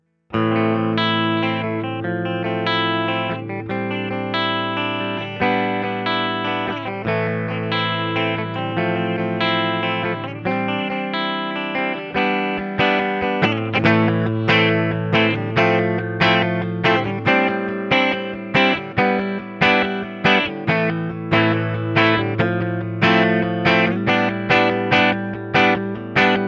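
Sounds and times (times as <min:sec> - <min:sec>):
Les Paul clean electric guitar on neck and bridge pickups: 0:00.0 - 0:26.4.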